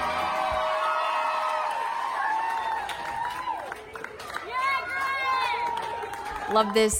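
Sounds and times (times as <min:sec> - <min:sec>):
hospital staff cheering: 0:00.0 - 0:06.9
scattered clapping: 0:00.0 - 0:06.9.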